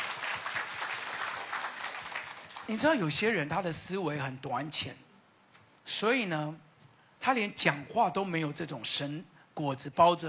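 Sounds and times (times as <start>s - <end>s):
audience clapping hands: 0.0s - 3.0s
speech: 2.7s - 5.0s, 5.9s - 10.2s.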